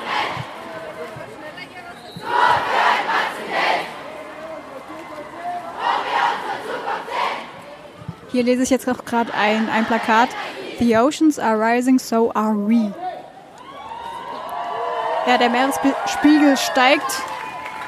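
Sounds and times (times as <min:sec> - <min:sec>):
protest crowd loudly chanting slogans: 0:00.0 - 0:01.4, 0:02.1 - 0:11.3
speech: 0:08.4 - 0:13.0, 0:15.2 - 0:17.3.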